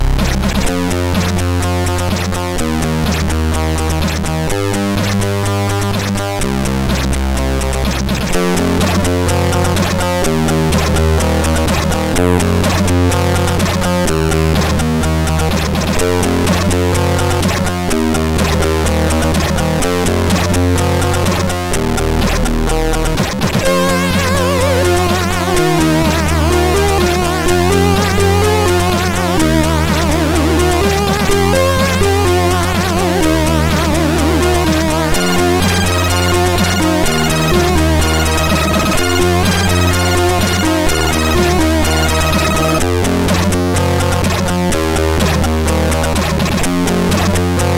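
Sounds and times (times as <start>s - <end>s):
hardbeat chiptune on a MOS6581R4 SID chip: 0.1s - 47.7s.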